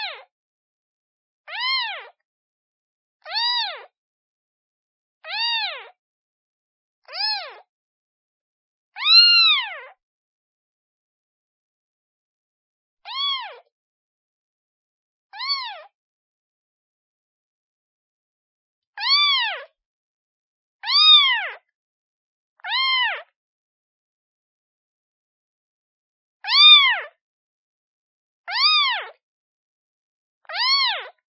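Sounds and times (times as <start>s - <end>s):
kitten meowing: 1.5s - 2.1s, 3.3s - 3.9s, 5.2s - 5.9s, 7.1s - 7.6s, 9.0s - 9.9s, 13.1s - 13.7s, 15.4s - 15.9s, 19.0s - 19.6s, 20.8s - 21.6s, 22.6s - 23.3s, 26.4s - 27.1s, 28.5s - 29.2s, 30.5s - 31.1s.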